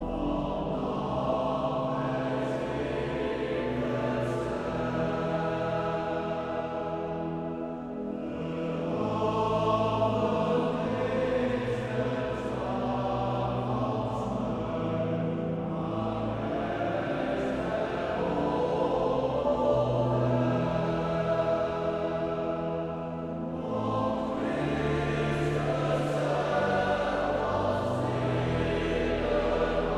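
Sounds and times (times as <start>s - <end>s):
male choir singing: 0.0s - 29.9s.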